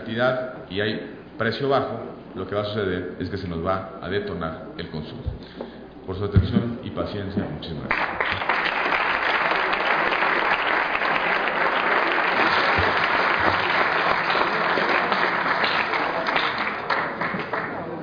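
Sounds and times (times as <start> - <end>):
speech: 0.1 - 8.6
audience applause: 7.9 - 18.0.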